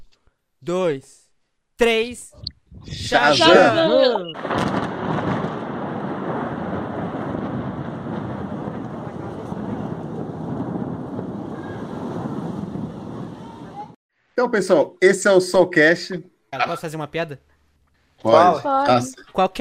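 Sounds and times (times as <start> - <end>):
speech: 0.6 - 1.2, 1.8 - 4.9, 14.4 - 17.5, 18.2 - 19.6
thunder lightning strike sound effect: 4.4 - 14.0.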